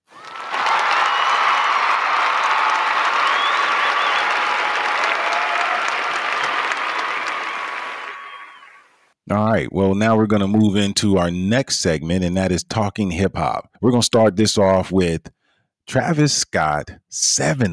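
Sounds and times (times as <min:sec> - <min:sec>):
audience applause: 0:00.0 - 0:09.0
faint cheers: 0:00.1 - 0:09.0
speech: 0:09.3 - 0:17.7.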